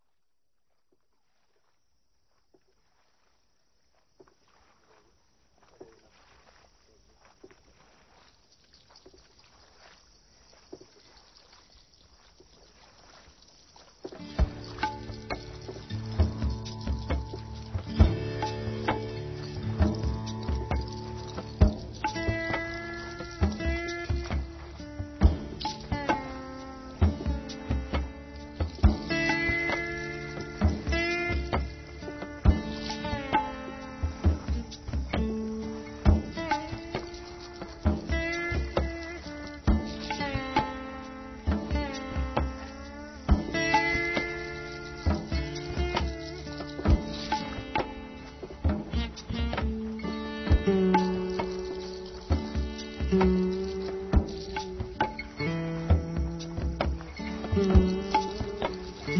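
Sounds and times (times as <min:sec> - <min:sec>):
fusion raga music: 0:14.1 - 0:59.1.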